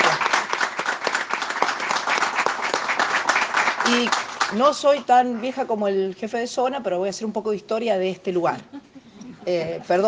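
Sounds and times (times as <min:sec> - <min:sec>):
crowd applauding: 0:00.0 - 0:05.0
speech: 0:03.9 - 0:08.8, 0:09.5 - 0:10.0.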